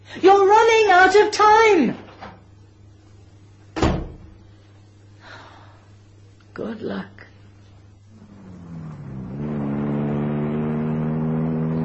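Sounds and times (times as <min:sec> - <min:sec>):
speech: 0:00.1 - 0:02.0, 0:06.6 - 0:07.2
car driving off at high speed: 0:08.1 - 0:11.8.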